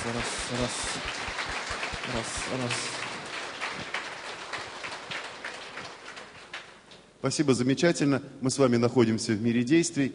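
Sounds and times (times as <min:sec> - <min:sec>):
speech: 0:00.0 - 0:01.3, 0:02.0 - 0:03.1, 0:07.2 - 0:10.1
seminar group clapping for one another: 0:00.0 - 0:07.0.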